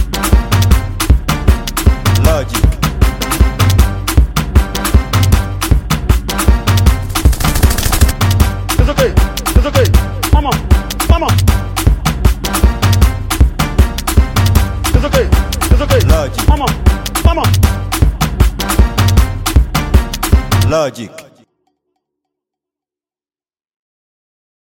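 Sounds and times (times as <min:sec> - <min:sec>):
professional music beat: 0:00.0 - 0:21.5.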